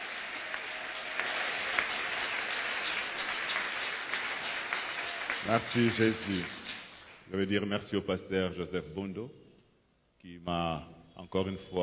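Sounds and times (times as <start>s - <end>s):
church congregation applauding and cheering during a Sunday morning service: 0.0s - 7.3s
speech: 5.4s - 6.6s, 7.3s - 9.4s, 10.2s - 11.8s.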